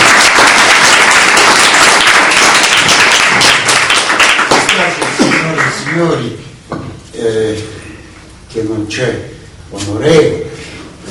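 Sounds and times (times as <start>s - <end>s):
audience applause: 0.0s - 6.2s
speech: 6.0s - 6.5s, 8.6s - 10.4s.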